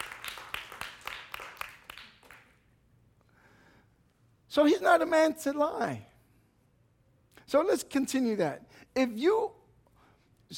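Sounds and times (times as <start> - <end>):
audience clapping hands: 0.0 - 2.7
speech: 4.5 - 6.1, 7.5 - 9.6.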